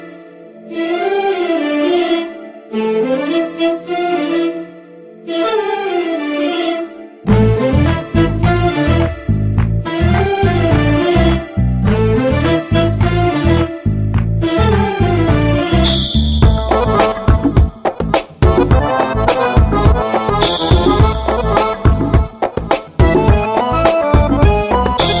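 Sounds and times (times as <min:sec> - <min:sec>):
Telugu background music ringtone: 0:00.3 - 0:25.1.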